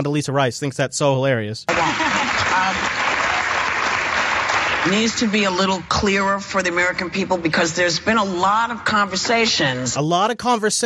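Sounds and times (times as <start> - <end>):
speech: 0.0 - 3.1, 4.8 - 10.8
audience clapping: 1.7 - 6.0.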